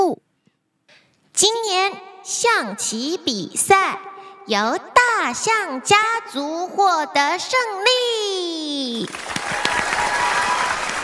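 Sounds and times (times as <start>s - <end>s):
speech: 0.1s - 0.3s, 1.4s - 9.7s
applause sound effect: 9.0s - 11.0s.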